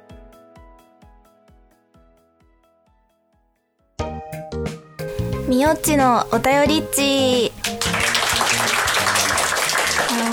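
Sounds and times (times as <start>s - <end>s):
speech: 5.5s - 8.0s
applause sound effect: 7.0s - 10.3s.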